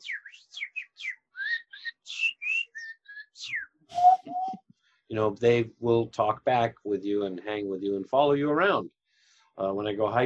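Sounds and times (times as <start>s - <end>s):
whistled bird call imitation: 0.0s - 4.6s
speech: 5.1s - 9.0s, 9.6s - 10.2s.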